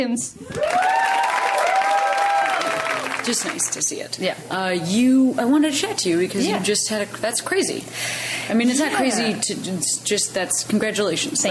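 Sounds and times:
speech: 0.0 - 1.0, 3.2 - 11.4
cheering and whoops: 0.4 - 3.2
audience clapping: 0.5 - 3.9.

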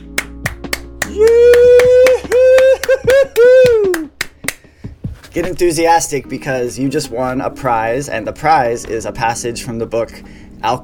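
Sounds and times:
hand clapping: 0.0 - 5.3
speech: 5.4 - 10.8.

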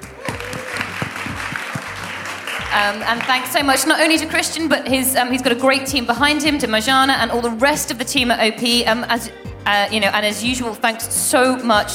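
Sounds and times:
audience applause: 0.0 - 3.9
speech: 2.8 - 11.9.

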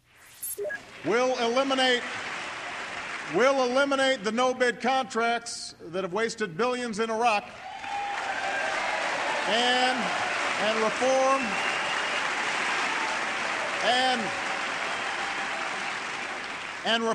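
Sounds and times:
hesitant audience applause at a political speech: 0.9 - 4.2, 7.5 - 17.1
speech: 1.0 - 2.2, 3.3 - 7.7, 9.5 - 11.7, 13.8 - 14.4, 16.8 - 17.1.

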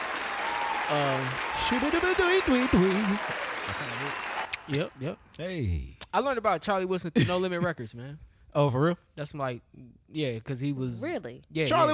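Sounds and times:
hand clapping: 0.0 - 5.0
speech: 0.9 - 11.9.

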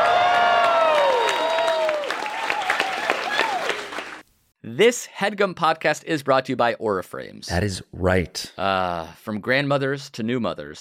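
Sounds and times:
audience applause: 0.0 - 4.2
speech: 4.8 - 10.7.

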